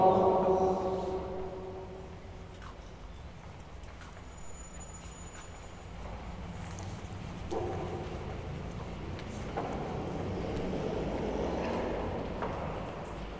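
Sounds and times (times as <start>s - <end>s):
Good Friday mass at San Pablo parish in Villa Constitucion: 0.0s - 2.6s, 6.5s - 13.3s.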